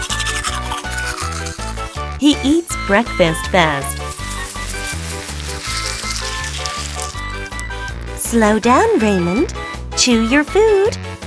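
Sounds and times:
fast teeth brushing: 0.0s - 2.2s, 3.6s - 8.2s
speech: 2.2s - 4.0s, 8.3s - 11.1s.

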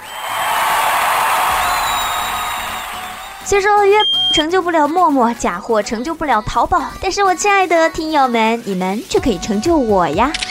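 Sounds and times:
crowd applause: 0.0s - 3.5s
crowd whoops and whistles: 0.0s - 4.4s
speech: 3.5s - 10.5s.

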